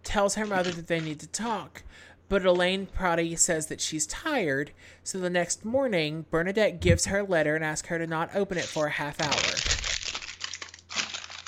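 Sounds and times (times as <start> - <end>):
speech: 0.1 - 9.8
crackling CVS receipt being crinkled: 0.4 - 1.2, 8.5 - 11.4.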